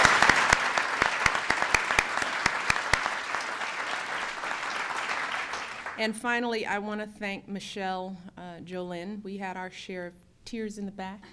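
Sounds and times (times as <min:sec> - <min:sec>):
round of applause: 0:00.0 - 0:06.0
speech: 0:06.0 - 0:11.3.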